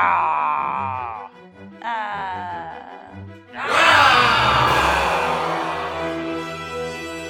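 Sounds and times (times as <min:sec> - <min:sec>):
several people imitating a bestial roar: 0:00.0 - 0:01.3, 0:03.6 - 0:06.9.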